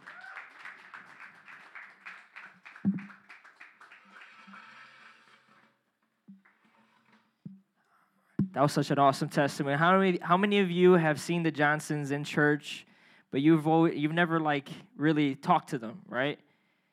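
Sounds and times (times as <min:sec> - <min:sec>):
audience hand clapping: 0:00.0 - 0:05.5
speech: 0:08.6 - 0:16.5.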